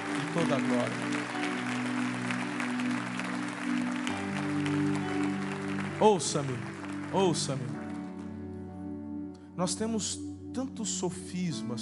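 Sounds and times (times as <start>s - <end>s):
applause during a church service: 0.0s - 8.5s
sustained keyboard chords: 0.0s - 11.8s
speech: 0.4s - 1.4s, 6.0s - 7.8s, 9.6s - 11.8s.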